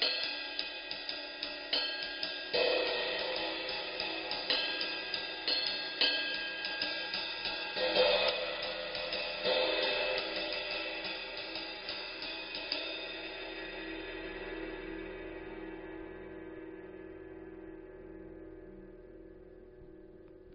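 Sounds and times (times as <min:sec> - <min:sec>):
20-inch dark ride cymbal: 0:00.0 - 0:15.4.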